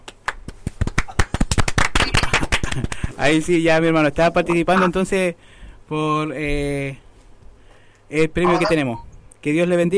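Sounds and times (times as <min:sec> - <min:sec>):
small group applauding: 0:00.0 - 0:03.2
speech: 0:02.8 - 0:07.0, 0:08.1 - 0:09.9.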